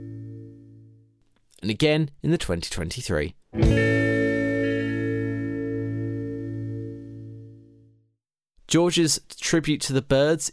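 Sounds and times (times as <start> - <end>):
stray guitar note in a song's decay: 0.0 - 1.1, 3.6 - 7.7
speech: 1.6 - 4.0, 8.7 - 10.5.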